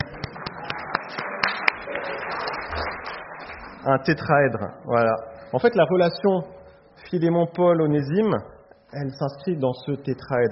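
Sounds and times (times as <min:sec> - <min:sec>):
audience applause: 0:00.0 - 0:04.1
speech: 0:03.8 - 0:10.5.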